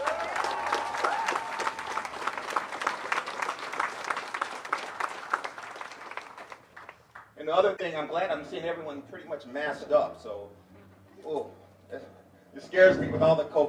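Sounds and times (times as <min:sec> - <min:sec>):
audience applauding itself at a community gathering: 0:00.0 - 0:07.3
speech: 0:07.5 - 0:10.6, 0:11.2 - 0:13.6.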